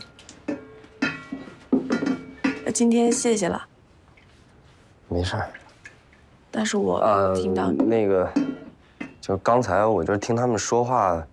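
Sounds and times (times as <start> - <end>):
washing dishes: 0.0 - 3.6, 7.2 - 9.4
water dripping: 0.0 - 4.4, 5.1 - 9.5
speech: 2.8 - 3.7, 5.1 - 5.6, 6.5 - 8.4, 9.3 - 11.3.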